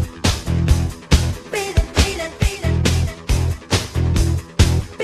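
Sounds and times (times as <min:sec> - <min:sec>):
bass in standard tuning: 0:00.0 - 0:01.4, 0:02.6 - 0:04.9.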